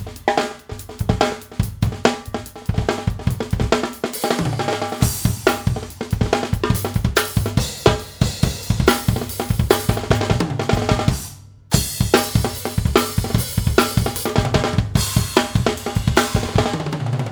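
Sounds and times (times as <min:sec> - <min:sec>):
drums: 0:00.0 - 0:17.3.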